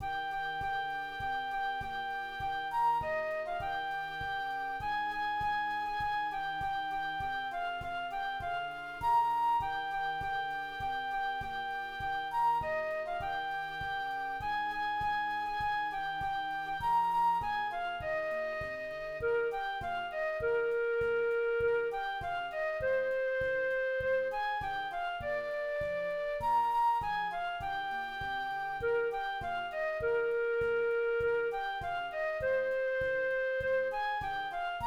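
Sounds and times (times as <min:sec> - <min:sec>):
flute: 0:00.0 - 0:34.8.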